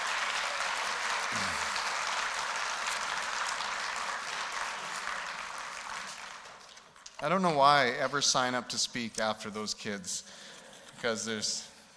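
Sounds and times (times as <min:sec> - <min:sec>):
audience applause: 0:00.0 - 0:07.1
speech: 0:07.2 - 0:11.7.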